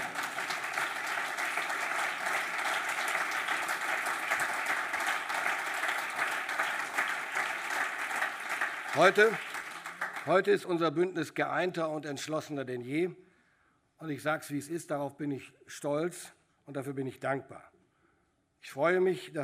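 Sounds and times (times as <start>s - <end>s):
applause: 0.0s - 10.7s
speech: 9.0s - 9.5s, 10.3s - 13.2s, 14.0s - 17.7s, 18.6s - 19.4s.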